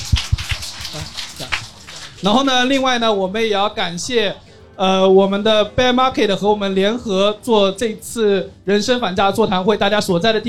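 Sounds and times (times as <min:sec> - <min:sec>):
audience clapping: 0:00.0 - 0:03.0
speech: 0:02.2 - 0:10.4.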